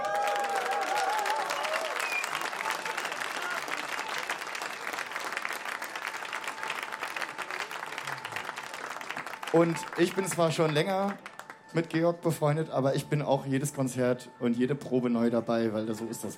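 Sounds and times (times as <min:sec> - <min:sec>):
audience applause: 0:00.0 - 0:11.9
whoops and whistles: 0:00.9 - 0:02.6
speech: 0:09.6 - 0:16.3.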